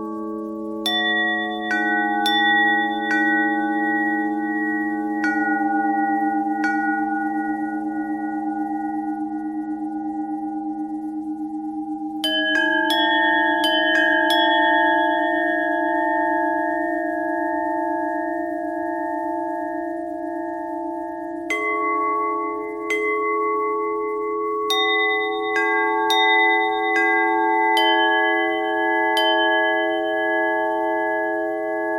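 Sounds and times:
bell with pitch bend twist: 0.0s - 31.9s.

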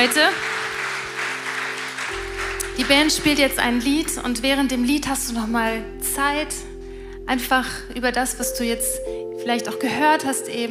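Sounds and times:
speech: 0.0s - 0.5s, 2.8s - 6.7s, 7.3s - 10.6s
audience applause: 0.0s - 4.2s.

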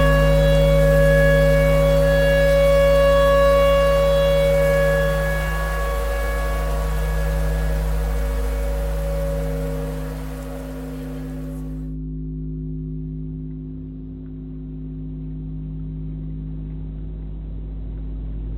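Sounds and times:
clarinet: 0.0s - 11.8s
tornado siren: 0.0s - 11.9s.

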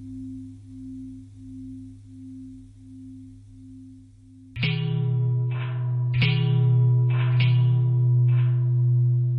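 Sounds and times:
long bell ringing: 4.6s - 9.2s.

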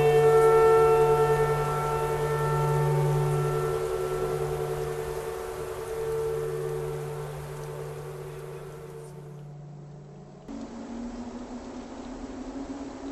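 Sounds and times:
clarinet: 0.0s - 9.4s
tornado siren: 0.0s - 13.1s.

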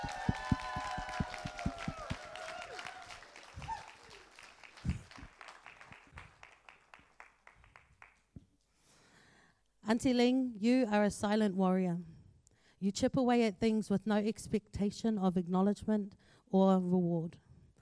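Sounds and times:
audience applause: 0.0s - 8.1s
speech: 9.9s - 12.1s, 12.8s - 17.4s.

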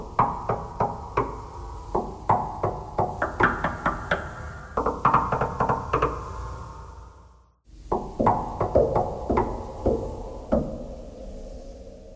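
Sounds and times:
knocking thread noise: 0.0s - 6.3s, 7.9s - 10.7s.

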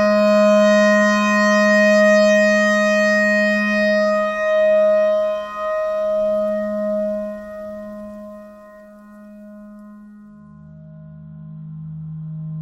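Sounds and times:
simple clarinet notes: 0.0s - 9.8s.

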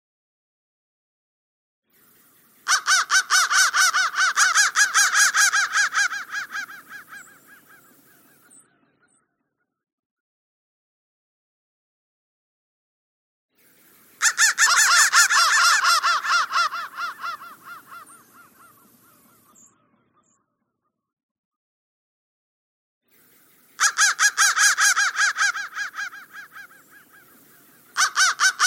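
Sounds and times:
crow calling harshly: 2.6s - 8.6s, 14.2s - 20.4s, 23.8s - 28.6s.

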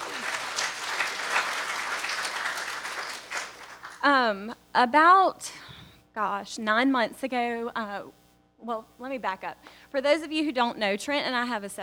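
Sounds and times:
audience applause: 0.0s - 4.0s
speech: 4.0s - 5.6s, 6.2s - 11.8s.

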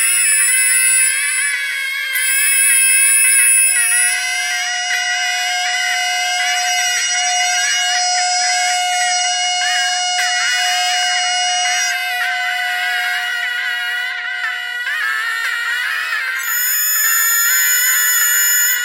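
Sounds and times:
bagpipe: 0.0s - 18.8s.

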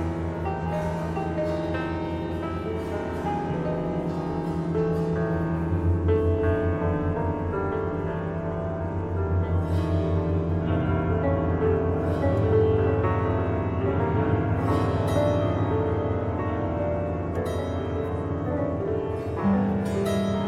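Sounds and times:
piano thread noise: 0.0s - 20.4s.

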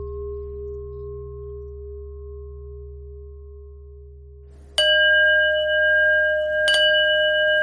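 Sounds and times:
bells ringing: 4.8s - 7.5s.

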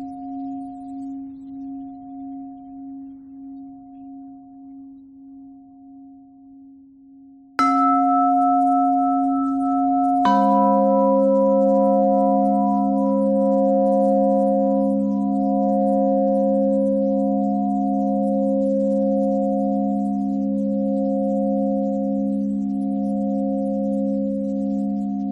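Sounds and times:
pentatonic bell melody: 7.6s - 25.1s.

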